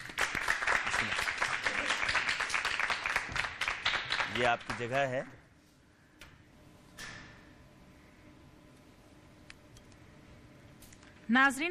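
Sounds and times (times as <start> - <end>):
audience applause welcoming Team A onto a cooking competition stage: 0.0 - 5.0
speech: 4.4 - 5.4, 11.3 - 11.7.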